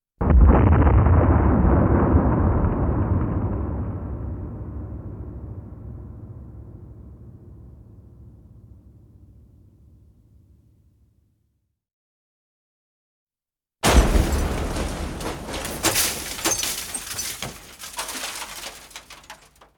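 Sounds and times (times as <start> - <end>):
explosion: 0.2 - 9.2, 13.8 - 19.7.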